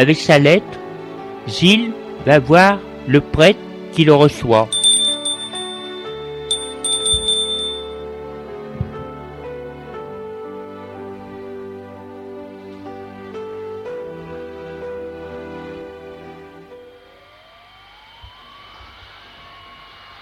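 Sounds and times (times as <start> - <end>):
speech: 0.0 - 0.8, 1.5 - 4.8
doorbell at a priest's door: 4.7 - 8.1.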